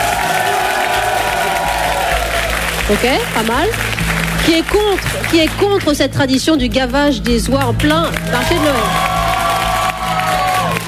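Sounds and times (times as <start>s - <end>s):
crowd roar at a Christmas market: 0.0s - 5.3s, 8.1s - 10.8s
audience applause at a Christmas market in Alsace: 0.0s - 10.8s
speech: 2.9s - 9.1s.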